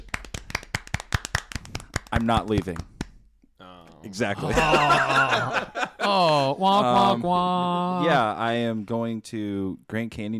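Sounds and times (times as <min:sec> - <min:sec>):
hand clapping: 0:00.0 - 0:03.2
speech: 0:02.2 - 0:02.9, 0:04.0 - 0:10.3
laughter: 0:04.2 - 0:07.6.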